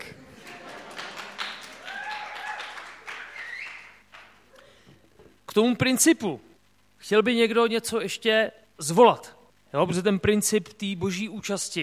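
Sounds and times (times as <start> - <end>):
audience applause: 0.0 - 4.4
speech: 5.6 - 11.8.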